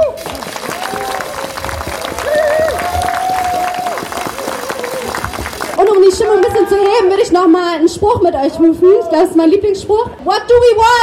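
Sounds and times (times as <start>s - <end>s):
crowd applause: 0.0s - 7.1s
cheering voices: 0.0s - 7.6s
speech: 6.7s - 11.0s.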